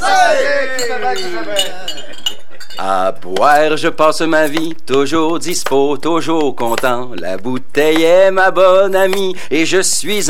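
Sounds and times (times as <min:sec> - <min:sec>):
speech: 0:00.3 - 0:02.0, 0:02.8 - 0:10.2
beer glasses clinking in a toast: 0:00.8 - 0:03.2.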